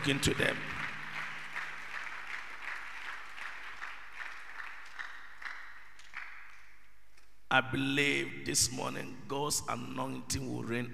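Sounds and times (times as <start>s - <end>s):
speech: 0.0s - 0.8s, 7.5s - 10.9s
crowd clapping: 0.0s - 6.8s.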